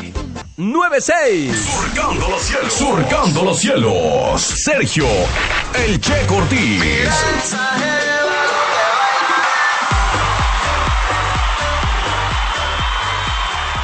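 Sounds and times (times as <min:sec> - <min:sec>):
speech: 0:00.6 - 0:08.0
crowd applause with cheering and high whoops: 0:06.7 - 0:13.8.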